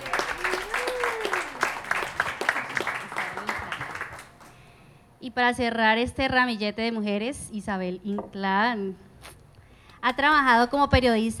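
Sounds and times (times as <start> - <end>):
audience applause: 0.0 - 4.7
speech: 5.4 - 9.1, 10.0 - 11.3.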